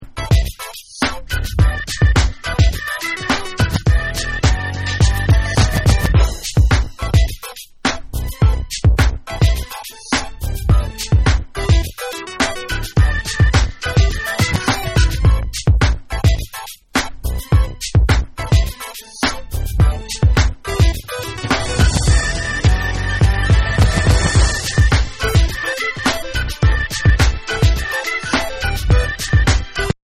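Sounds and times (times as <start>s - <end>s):
instrumental music: 0.1s - 30.0s.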